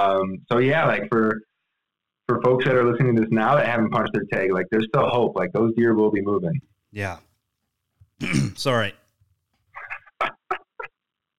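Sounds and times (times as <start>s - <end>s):
speech: 0.0s - 1.5s, 2.3s - 7.3s, 8.2s - 9.0s
person coughing after water went down wrong pipe: 8.2s - 8.7s.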